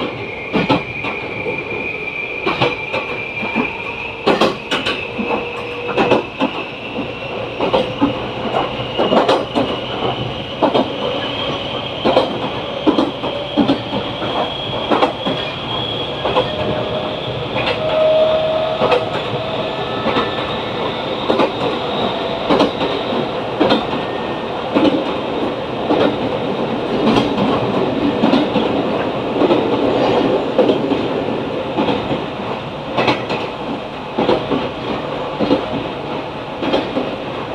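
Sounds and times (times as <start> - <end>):
Meitetsu 5000 series train running on the track, heard inside: 0.0 - 37.5
brief squeal: 0.1 - 24.7
thin high whine: 12.3 - 24.7.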